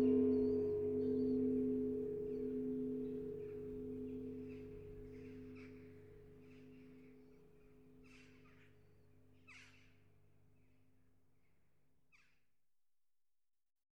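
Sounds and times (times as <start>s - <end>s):
church bells ringing: 0.0s - 7.0s.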